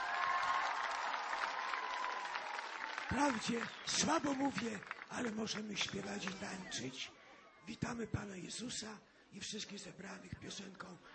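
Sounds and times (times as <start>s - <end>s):
audience applause: 0.0s - 6.9s
speech: 3.1s - 11.1s.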